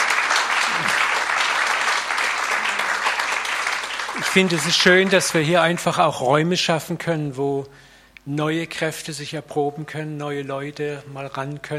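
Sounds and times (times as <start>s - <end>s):
crowd applause: 0.0s - 5.6s
speech: 4.4s - 11.7s.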